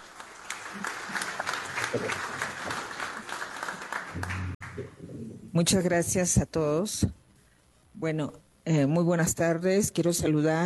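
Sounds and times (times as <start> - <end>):
audience applause: 0.0 - 5.0
speech: 1.9 - 2.3, 5.6 - 7.2, 8.0 - 10.6.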